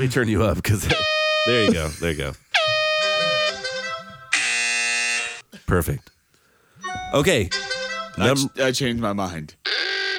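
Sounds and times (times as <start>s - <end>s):
speech: 0.0s - 2.7s, 5.7s - 6.2s, 7.1s - 7.6s, 8.2s - 9.6s
MIDI air horn sound effect: 0.9s - 1.8s, 2.6s - 5.4s.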